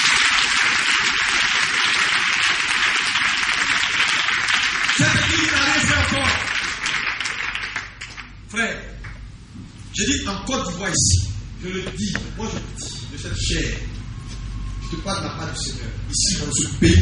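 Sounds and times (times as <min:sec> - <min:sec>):
church congregation in Côte d'Ivoire cheering and applauding: 0:00.0 - 0:08.3
speech: 0:10.0 - 0:14.0, 0:14.9 - 0:17.0.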